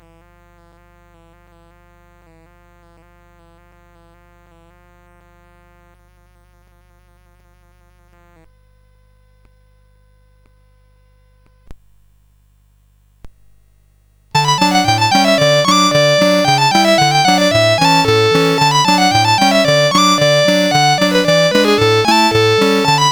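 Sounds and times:
gavotte on CSG8580R5 sound chip: 14.4s - 23.1s.

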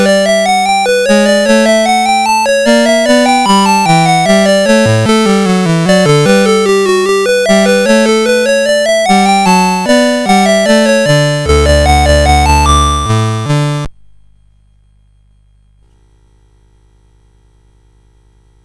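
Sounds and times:
march in D: 0.0s - 13.9s.

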